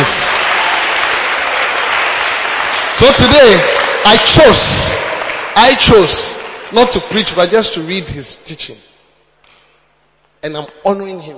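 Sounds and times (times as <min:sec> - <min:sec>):
crowd clapping: 0:00.0 - 0:07.8
speech: 0:03.0 - 0:05.0, 0:05.6 - 0:08.9, 0:10.4 - 0:11.3.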